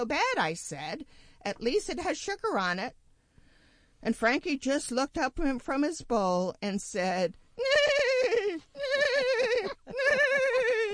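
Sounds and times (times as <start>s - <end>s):
speech: 0.0s - 3.0s, 4.0s - 8.4s
person imitating a horse whinnying: 7.6s - 10.9s.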